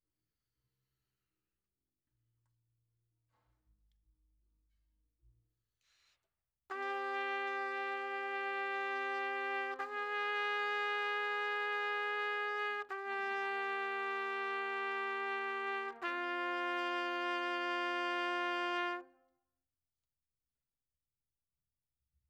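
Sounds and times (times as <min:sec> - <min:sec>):
trumpet: 0:06.7 - 0:19.4.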